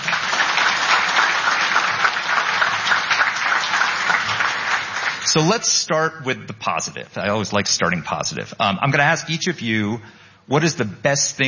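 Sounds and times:
audience applause at a foreign-policy panel event: 0:00.0 - 0:05.4
speech: 0:05.3 - 0:11.4.

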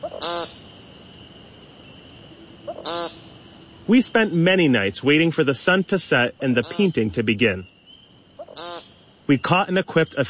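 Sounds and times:
American woodcock peent calls: 0:00.0 - 0:00.6, 0:02.6 - 0:03.3, 0:06.4 - 0:07.1, 0:08.4 - 0:09.3
speech: 0:03.9 - 0:07.7, 0:09.3 - 0:10.2.

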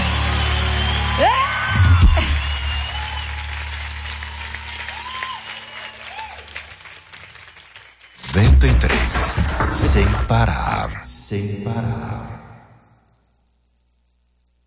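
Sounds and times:
audience applauding: 0:00.0 - 0:09.4
speech: 0:08.6 - 0:12.4.

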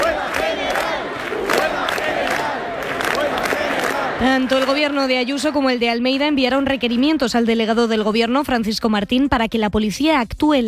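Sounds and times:
crowd of people protesting about the housing crisis in a packed square: 0:00.0 - 0:07.2
speech: 0:04.2 - 0:10.6.

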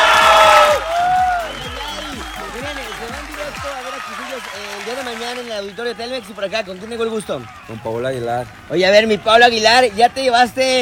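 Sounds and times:
steady thumping beat: 0:00.0 - 0:03.8
winners shouting and cheering: 0:00.0 - 0:10.8
speech: 0:05.9 - 0:10.8.

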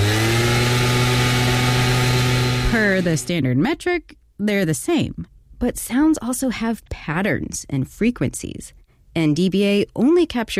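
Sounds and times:
gas-powered leaf blower with two-stroke engine droning: 0:00.0 - 0:03.3
speech: 0:03.0 - 0:10.5.

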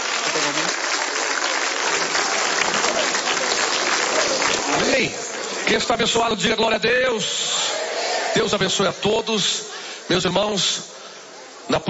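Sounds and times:
audience applauding loudly: 0:00.0 - 0:06.2
speech: 0:00.4 - 0:00.9, 0:04.9 - 0:07.5, 0:08.4 - 0:11.0, 0:11.7 - 0:11.8.

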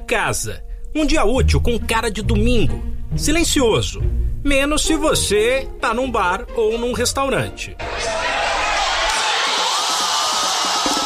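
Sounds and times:
speech: 0:00.1 - 0:08.3
football fans cheering a goal: 0:07.8 - 0:11.0.

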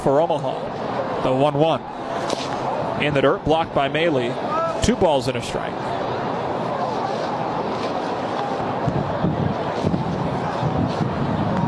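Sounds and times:
speech: 0:00.0 - 0:06.0
wind blowing at an outdoor baseball game in Omaha: 0:06.4 - 0:11.6.

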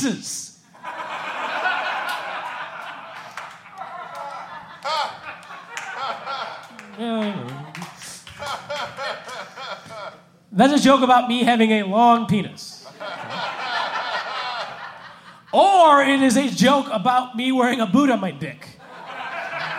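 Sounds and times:
speech: 0:00.0 - 0:01.0, 0:10.6 - 0:12.7, 0:15.6 - 0:18.6
scattered crowd laughter and chuckles: 0:00.7 - 0:10.4, 0:12.8 - 0:15.6, 0:18.8 - 0:19.7
audience clapping: 0:02.0 - 0:10.0.

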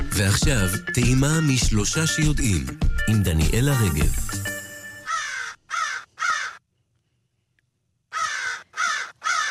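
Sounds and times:
speech: 0:00.2 - 0:04.4
fan-tailed raven calls: 0:05.0 - 0:06.6, 0:08.1 - 0:09.5.

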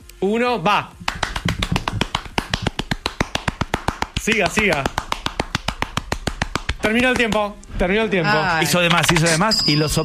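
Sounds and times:
speech: 0:00.2 - 0:01.0, 0:04.2 - 0:05.0, 0:06.8 - 0:10.0
rapid hand clapping: 0:01.0 - 0:07.5.

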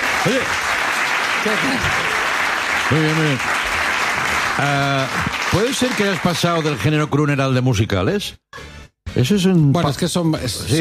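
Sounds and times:
audience applause: 0:00.0 - 0:07.1
speech: 0:00.2 - 0:00.6, 0:01.4 - 0:02.2, 0:02.9 - 0:03.8, 0:04.6 - 0:08.4, 0:09.2 - 0:10.7.

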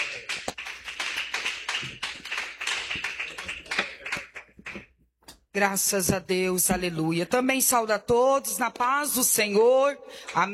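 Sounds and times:
audience clapping hands: 0:00.0 - 0:04.9
speech: 0:05.6 - 0:10.5.

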